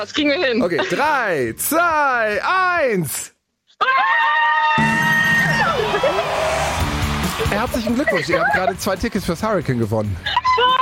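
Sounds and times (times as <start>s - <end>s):
speech: 0.0s - 5.1s, 7.5s - 10.7s
two people cheering loudly over phone: 3.8s - 8.8s
laughter: 5.5s - 10.7s.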